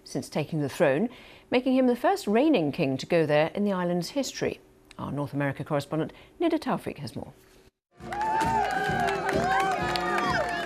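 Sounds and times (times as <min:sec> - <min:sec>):
speech: 0:00.1 - 0:07.5
crowd cheering for a royal visit: 0:08.0 - 0:10.6.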